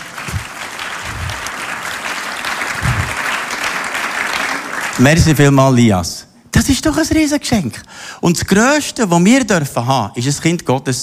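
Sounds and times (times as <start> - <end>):
audience applause: 0.0 - 5.5
speech: 5.0 - 11.0.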